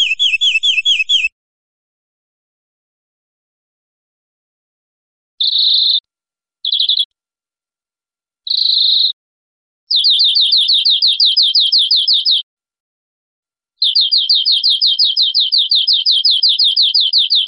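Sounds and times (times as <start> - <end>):
European greenfinch buzzy trill: 0.0 - 1.3, 5.4 - 6.0, 6.7 - 7.1, 8.5 - 9.2, 9.9 - 12.4, 13.8 - 17.4.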